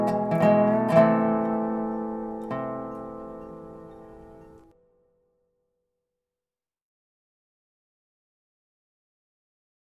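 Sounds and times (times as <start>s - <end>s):
dobro playing Christmas music: 0.0s - 4.8s.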